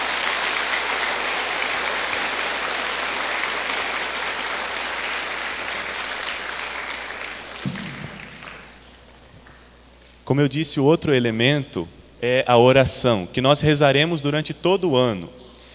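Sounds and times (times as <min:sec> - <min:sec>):
applause from church audience: 0:00.0 - 0:08.9
speech: 0:10.3 - 0:15.4.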